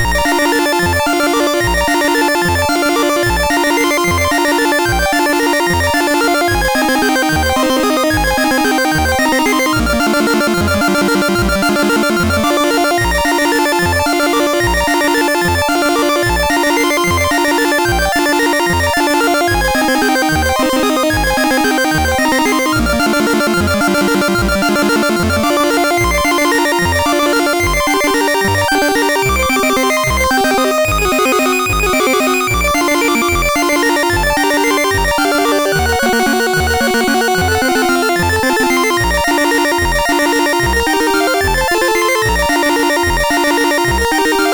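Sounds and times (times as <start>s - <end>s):
MOS6581R3 chiptune music: 0.0s - 44.5s.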